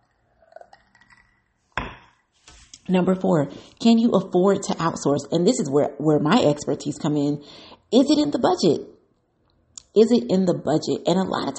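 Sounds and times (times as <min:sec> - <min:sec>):
person drinking water: 0:00.0 - 0:01.6
speech: 0:02.9 - 0:09.0, 0:10.0 - 0:11.5.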